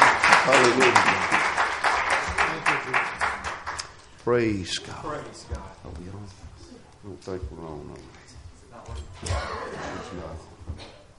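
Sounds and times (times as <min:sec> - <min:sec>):
church congregation clapping in unison in praise: 0:00.0 - 0:04.2
speech: 0:00.5 - 0:01.4, 0:04.2 - 0:08.2, 0:08.8 - 0:10.8.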